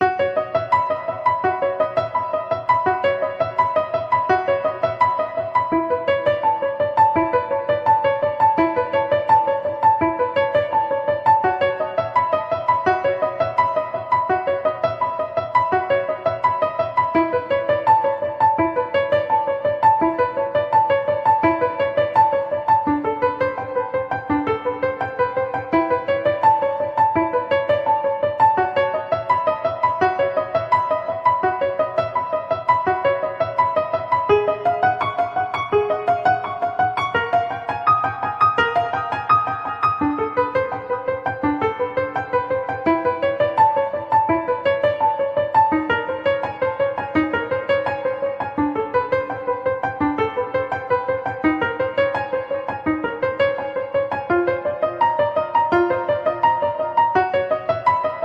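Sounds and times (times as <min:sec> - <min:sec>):
piano: 0:00.0 - 0:58.2.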